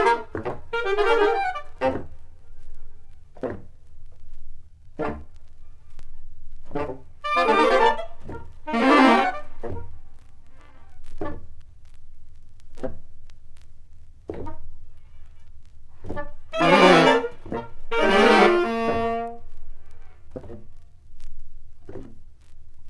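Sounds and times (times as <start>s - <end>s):
saxophone orchestra: 0.0s - 2.0s, 6.8s - 9.9s, 16.1s - 19.4s.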